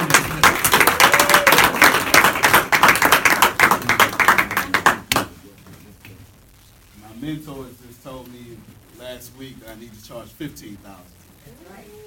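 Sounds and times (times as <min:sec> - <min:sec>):
audience applause: 0:00.0 - 0:05.6
speech: 0:07.3 - 0:12.0.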